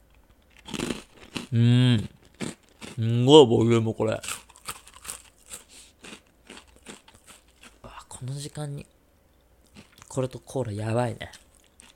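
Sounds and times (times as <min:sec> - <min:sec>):
thick rice crackers crunching as someone chews: 0:00.4 - 0:03.3, 0:04.0 - 0:08.2, 0:09.7 - 0:10.4, 0:11.2 - 0:11.9
speech: 0:01.5 - 0:02.2, 0:03.0 - 0:04.3, 0:08.4 - 0:09.0, 0:10.1 - 0:11.4.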